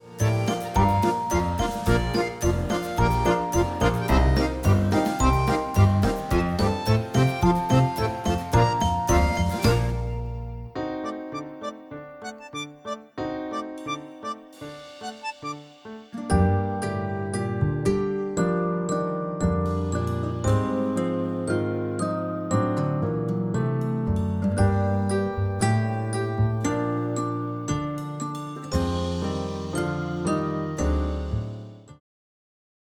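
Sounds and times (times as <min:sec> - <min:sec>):
instrumental music: 0:00.0 - 0:32.0.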